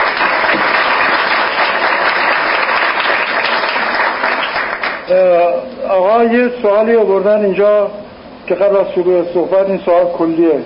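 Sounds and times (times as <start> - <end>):
audience applause: 0.0 - 5.1
speech: 5.1 - 10.6.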